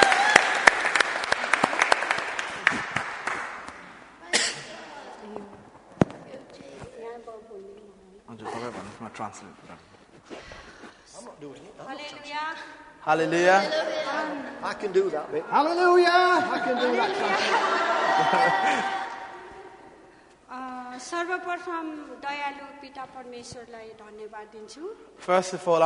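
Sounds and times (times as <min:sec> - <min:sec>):
church congregation clapping to welcome a speaker: 0:00.0 - 0:04.0, 0:16.6 - 0:19.4
speech: 0:09.2 - 0:19.0, 0:21.3 - 0:25.8
laughter: 0:16.2 - 0:19.8.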